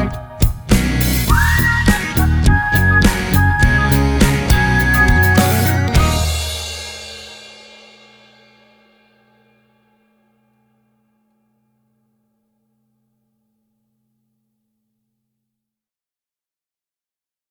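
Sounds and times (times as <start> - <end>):
person whistling: 0.0 - 7.0.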